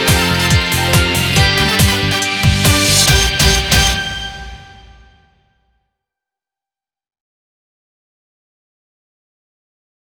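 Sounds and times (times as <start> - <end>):
karaoke backing track: 0.0 - 4.4.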